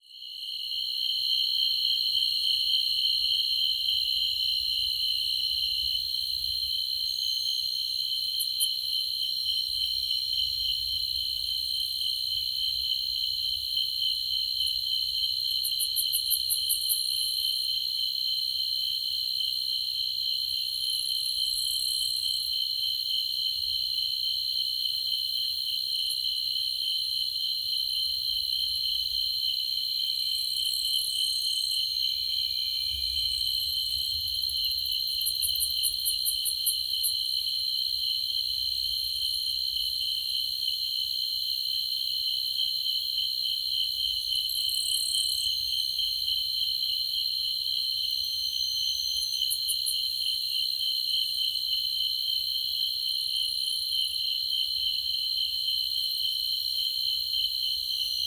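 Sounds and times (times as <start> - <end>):
restless crickets chirping: 0.1 - 58.2.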